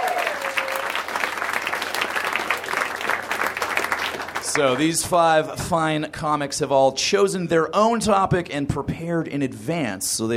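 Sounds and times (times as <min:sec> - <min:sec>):
audience applause: 0:00.0 - 0:05.1
speech: 0:04.5 - 0:10.3.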